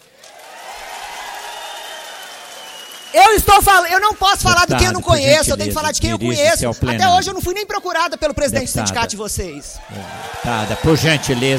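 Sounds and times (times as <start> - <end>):
audience applauding in a legislative chamber: 0.0 - 5.1, 9.8 - 11.5
speech: 3.1 - 11.5.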